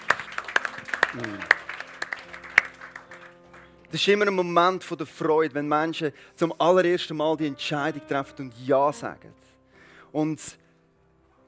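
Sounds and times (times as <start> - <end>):
audience applauding: 0.0 - 3.9
speech: 1.1 - 1.6, 3.9 - 9.5, 10.1 - 10.6.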